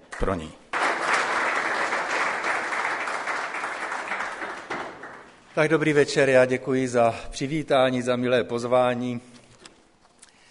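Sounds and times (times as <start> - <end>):
crowd clapping: 0.0 - 5.5
speech: 0.2 - 0.6, 5.6 - 9.3.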